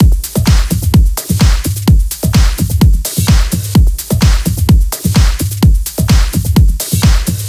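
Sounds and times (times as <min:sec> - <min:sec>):
drum kit at 128 BPM: 0:00.0 - 0:07.4.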